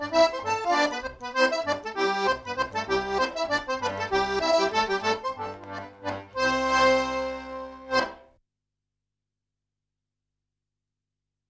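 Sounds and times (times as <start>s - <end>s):
step dance tune: 0.0s - 8.2s.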